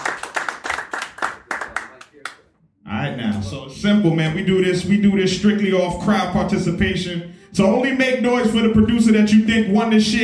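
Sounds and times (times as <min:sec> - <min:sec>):
audience clapping: 0:00.0 - 0:02.5
speech: 0:03.2 - 0:10.2.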